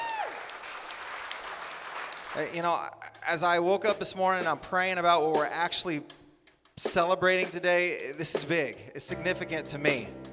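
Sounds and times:
audience clapping: 0.0s - 2.7s
speech: 2.4s - 6.2s, 6.8s - 10.2s.

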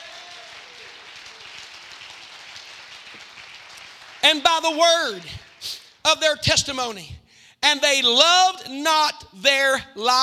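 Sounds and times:
audience clapping hands: 0.0s - 6.0s
speech: 4.2s - 10.2s.

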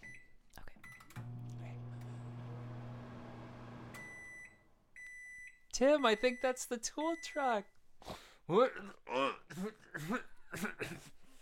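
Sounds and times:
microwave humming: 1.1s - 4.6s
speech: 5.8s - 11.2s.

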